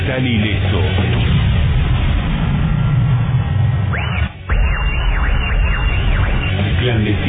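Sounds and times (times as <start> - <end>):
loud roaring explosion sound effect: 0.4 - 7.2
repeated rising-and-falling whistling tones: 2.7 - 7.2.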